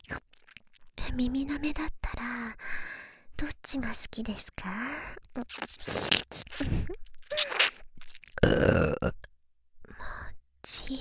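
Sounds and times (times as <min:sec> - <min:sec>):
speech: 0:01.2 - 0:02.8, 0:03.4 - 0:07.6
close-up burps at the ear in ASMR recording: 0:06.0 - 0:09.3.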